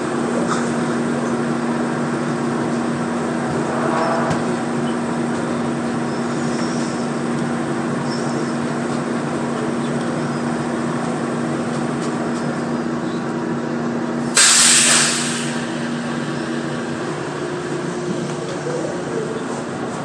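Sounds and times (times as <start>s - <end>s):
shuttle train rumbling: 0.0s - 20.0s
low droning hum: 2.3s - 6.7s
sharp hiss of air: 14.4s - 15.8s.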